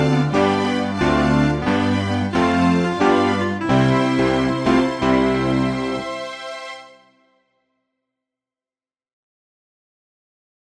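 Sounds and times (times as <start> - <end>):
instrumental backing track without melody: 0.0 - 7.2.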